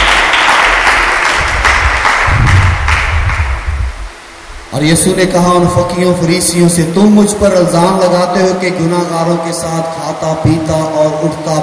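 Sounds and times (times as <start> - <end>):
audience applause at a Christian sermon: 0.0 - 3.7
speech: 4.8 - 11.6.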